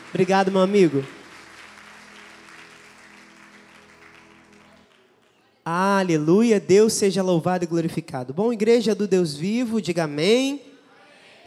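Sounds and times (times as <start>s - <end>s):
crowd clapping: 0.0s - 5.6s
speech: 0.1s - 1.2s, 5.6s - 10.7s.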